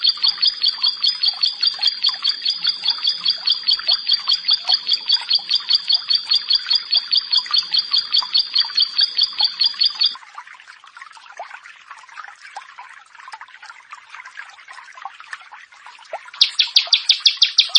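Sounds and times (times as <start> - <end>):
Bar-winged prinia song: 0.0 - 10.2, 16.4 - 17.7
quiet background chirping: 0.0 - 10.2, 16.4 - 17.7.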